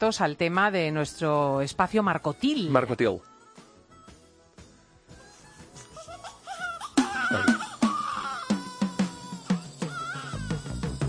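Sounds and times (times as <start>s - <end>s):
speech: 0.0s - 3.3s
newborn baby crying at birth: 5.6s - 11.0s.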